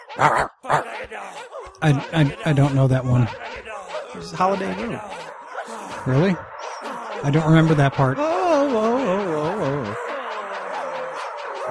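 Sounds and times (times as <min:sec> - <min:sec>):
person imitating a dog barking: 0:00.0 - 0:06.3, 0:07.9 - 0:11.7
laughter: 0:00.0 - 0:11.7
speech: 0:00.2 - 0:05.4, 0:06.0 - 0:06.5, 0:07.2 - 0:08.9.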